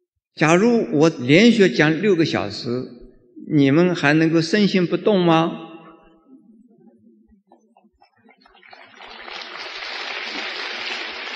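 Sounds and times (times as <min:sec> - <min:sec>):
speech: 0:00.4 - 0:05.7
audience applause: 0:08.3 - 0:11.3.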